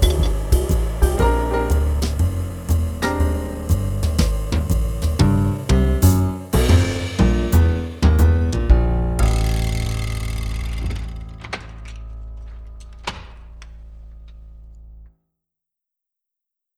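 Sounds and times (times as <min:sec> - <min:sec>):
jazz music: 0:00.0 - 0:12.0.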